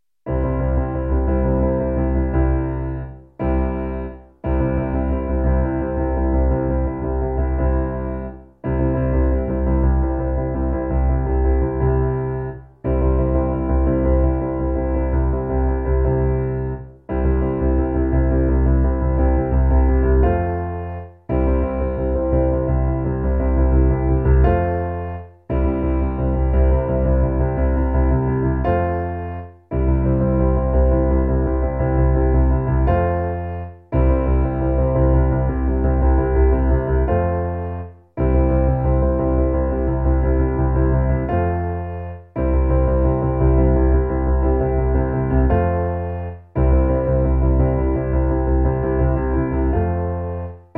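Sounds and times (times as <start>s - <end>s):
piano: 0.0s - 50.7s.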